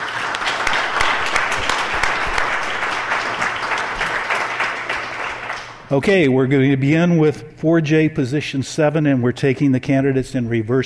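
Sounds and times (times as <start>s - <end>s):
round of applause: 0.0s - 5.9s
speech: 5.9s - 10.8s.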